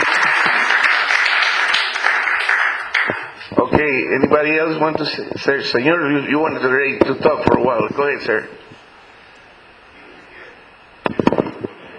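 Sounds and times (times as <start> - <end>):
crowd applauding: 0.0 - 3.4
speech: 3.8 - 8.7.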